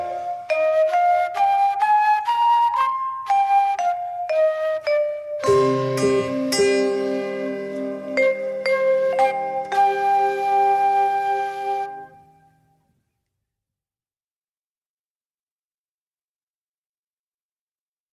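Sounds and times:
mono instrumental music: 0:00.0 - 0:13.1.

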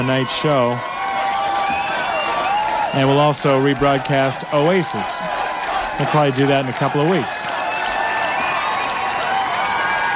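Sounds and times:
speech: 0:00.0 - 0:01.0, 0:02.9 - 0:05.3, 0:06.0 - 0:07.5
concert crowd at Avalon cheering and applauding for an encore: 0:00.0 - 0:10.1.

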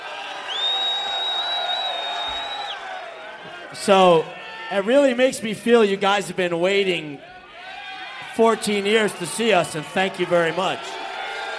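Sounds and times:
rowdy concert crowd roaring and whooping: 0:00.0 - 0:06.3, 0:07.2 - 0:11.5
shrill whistle: 0:00.4 - 0:02.8
speech: 0:03.7 - 0:07.3, 0:08.4 - 0:11.0.

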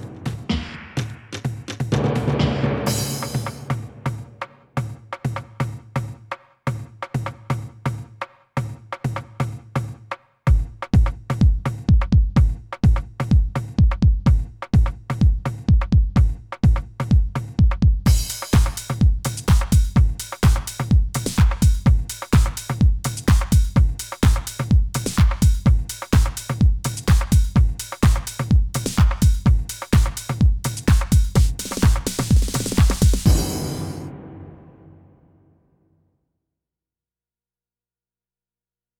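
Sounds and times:
tribal beats: 0:00.0 - 0:05.6, 0:10.5 - 0:35.1.

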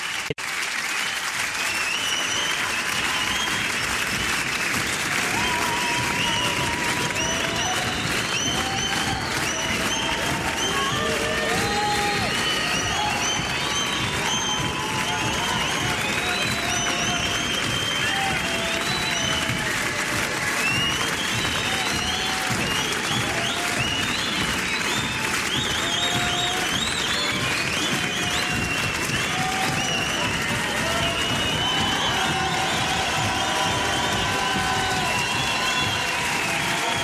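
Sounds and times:
concert audience applauding for an encore in Radio France's Studio 104: 0:00.0 - 0:37.0
concert audience cheering: 0:00.0 - 0:37.0.

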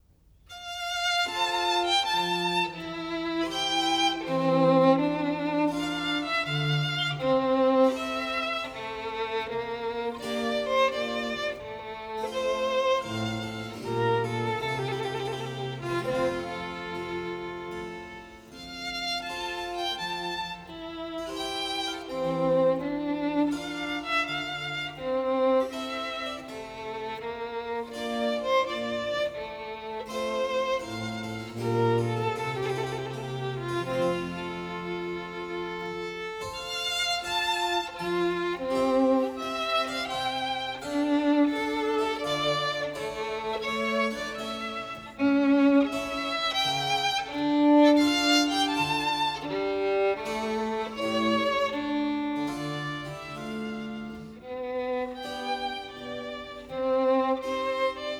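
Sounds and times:
violin sonata in F major: 0:00.0 - 0:58.1.

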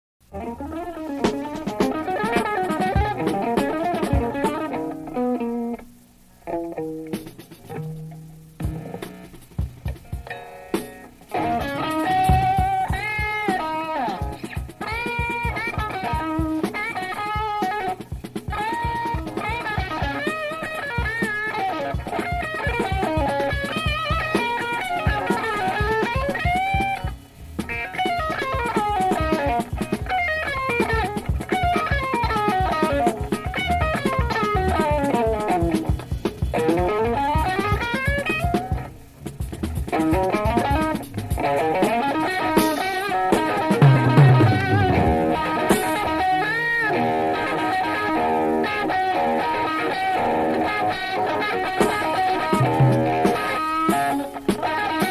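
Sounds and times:
instrumental jam: 0:00.2 - 0:55.0.

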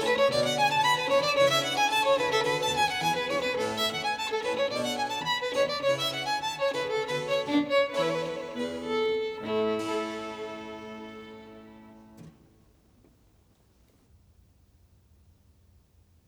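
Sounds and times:
violin sonata in A major allegro: 0:00.0 - 0:12.6.

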